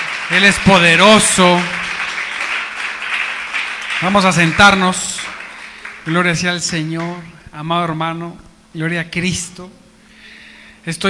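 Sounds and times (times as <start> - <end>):
audience applause: 0.0 - 7.2
speech: 0.3 - 1.8, 4.0 - 5.1, 6.0 - 9.8, 10.8 - 11.0.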